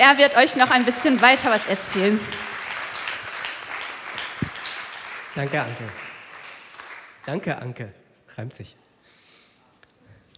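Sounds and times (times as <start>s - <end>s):
speech: 0.0s - 2.5s, 5.4s - 6.0s, 7.2s - 8.8s
audience applause: 0.0s - 7.6s.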